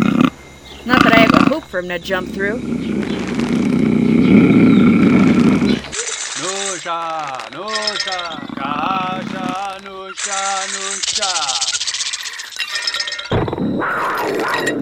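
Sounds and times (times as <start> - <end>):
jaguar roaring: 0.0 - 6.0, 8.2 - 9.8
wavering voiced sounds: 0.0 - 14.7
speech: 0.9 - 3.0, 3.8 - 4.9, 6.9 - 11.8.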